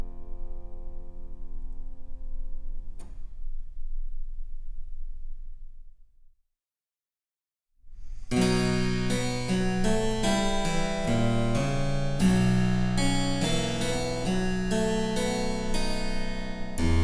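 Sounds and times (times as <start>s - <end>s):
harpsichord: 8.3s - 17.0s.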